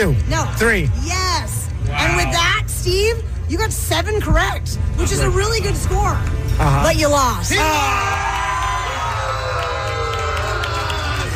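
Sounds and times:
speech: 0.0 - 8.3
cheering: 7.5 - 11.3.

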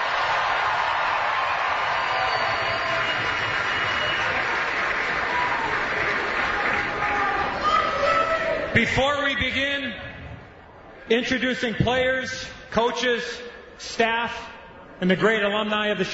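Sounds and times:
arena crowd applause and cheering: 0.0 - 8.7
speech: 8.7 - 10.1, 11.1 - 16.1.

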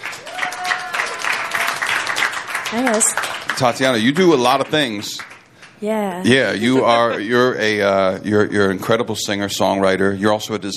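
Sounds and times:
audience applauding to welcome a singer-songwriter guest: 0.0 - 5.4
speech: 2.7 - 10.7
laughter: 6.3 - 7.8.

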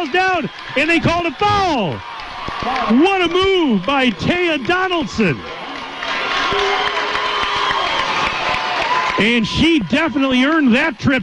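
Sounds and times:
speech: 0.0 - 5.6, 6.5 - 7.0, 9.2 - 11.2
basketball bench shouting and whooping: 0.0 - 11.2
basketball crowd cheering: 0.0 - 11.2.

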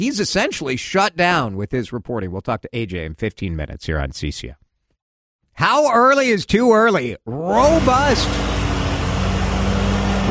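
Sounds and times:
speech: 0.0 - 4.6, 5.6 - 8.5
riding lawnmower engine drone: 7.5 - 10.2.

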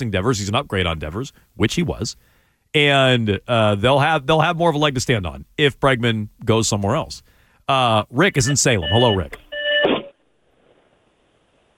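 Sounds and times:
speech: 0.0 - 9.4
electronic beep on a caller's phone line: 8.4 - 10.2.

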